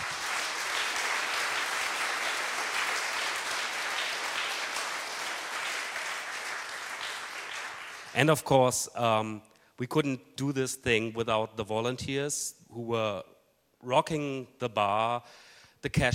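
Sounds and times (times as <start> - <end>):
audience applause: 0.0 - 8.2
speech: 8.2 - 16.1.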